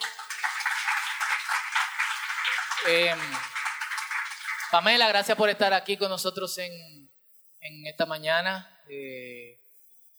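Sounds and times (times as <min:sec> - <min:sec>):
audience applause: 0:00.0 - 0:05.3
speech: 0:02.8 - 0:03.5, 0:04.7 - 0:07.0, 0:07.7 - 0:09.6.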